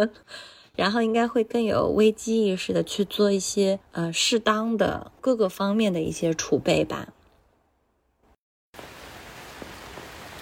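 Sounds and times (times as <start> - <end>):
speech: 0.0 - 7.2
rain falling: 8.8 - 10.4.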